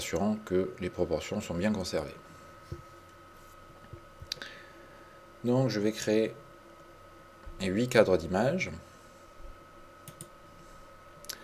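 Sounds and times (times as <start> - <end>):
quiet hum: 0.0 - 11.4
speech: 0.1 - 2.9, 5.4 - 6.4, 7.6 - 8.9
computer keyboard key and mouse clicks: 10.0 - 10.3.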